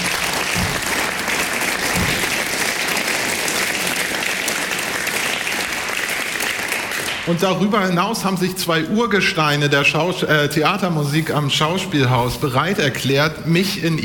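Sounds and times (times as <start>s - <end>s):
audience applause: 0.0s - 7.7s
speech: 7.3s - 14.0s.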